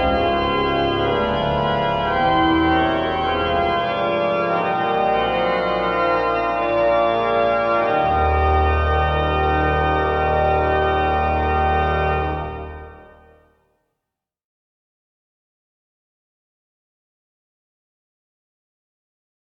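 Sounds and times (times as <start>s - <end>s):
chorale prelude music: 0.0s - 13.6s.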